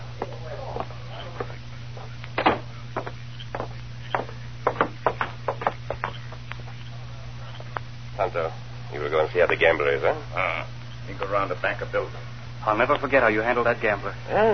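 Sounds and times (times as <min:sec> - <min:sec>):
knocking on a door: 0:02.4 - 0:06.1
speech: 0:08.2 - 0:14.5.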